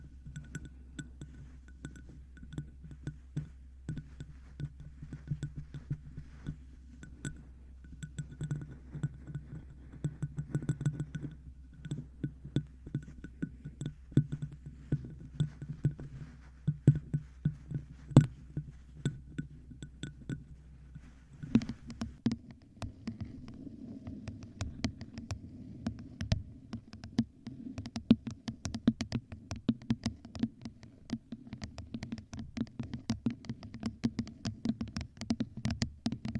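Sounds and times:
low hum: 0:00.0 - 0:22.2
objects tapping on microphone: 0:00.0 - 0:36.3.

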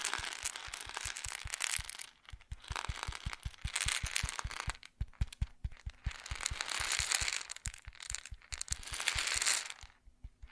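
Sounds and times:
grain rattling and pouring: 0:00.0 - 0:10.5
soft low thumps: 0:00.6 - 0:06.8, 0:10.0 - 0:10.5.

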